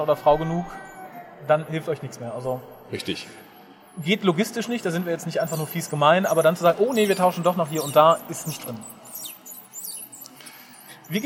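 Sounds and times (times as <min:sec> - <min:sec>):
speech: 0:00.0 - 0:03.4, 0:04.0 - 0:08.9, 0:11.1 - 0:11.2
squeaky baby stroller wheel being pushed past: 0:04.2 - 0:11.2.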